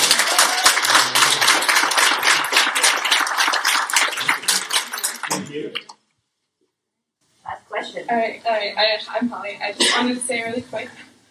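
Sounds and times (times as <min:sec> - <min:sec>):
audience clapping: 0:00.0 - 0:06.0
speech: 0:05.4 - 0:05.9, 0:08.1 - 0:11.2.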